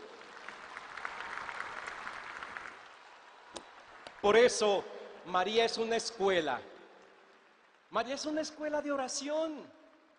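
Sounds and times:
audience applause: 0.0s - 4.5s
speech: 4.2s - 6.7s, 7.9s - 9.8s.

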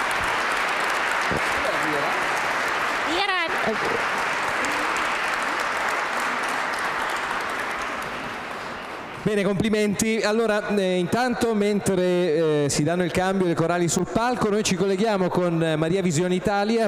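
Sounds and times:
applause for a choir soloist at a choral event: 0.0s - 9.5s
speech: 3.1s - 4.4s, 9.2s - 16.8s.

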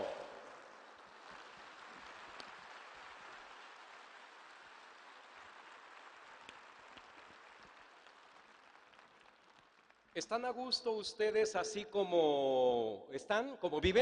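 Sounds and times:
audience applause: 0.0s - 10.2s
speech: 10.2s - 13.9s.

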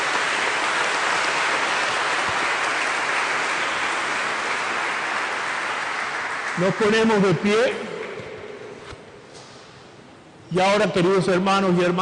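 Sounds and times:
audience applause for birthdays: 0.0s - 8.3s
speech: 6.6s - 7.9s, 10.5s - 12.0s.

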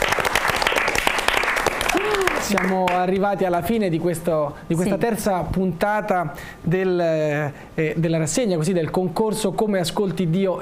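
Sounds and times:
audience applause: 0.0s - 3.1s
speech: 2.4s - 10.5s.

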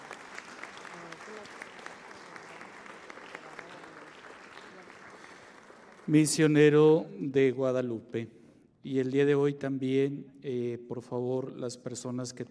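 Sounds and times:
audience applause: 0.0s - 6.6s
speech: 6.1s - 12.5s.

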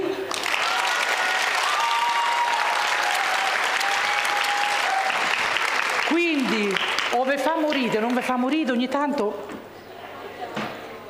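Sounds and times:
crowd applauding: 0.2s - 8.4s
speech: 8.0s - 9.6s.

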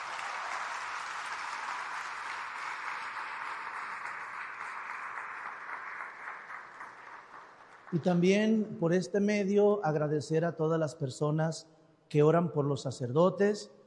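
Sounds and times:
applause: 0.0s - 8.8s
speech: 7.9s - 13.8s.

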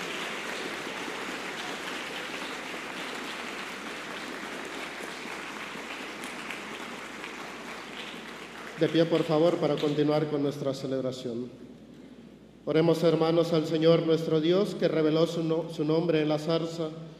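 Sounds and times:
audience applause: 0.0s - 9.9s
speech: 8.8s - 11.7s, 12.7s - 17.1s.

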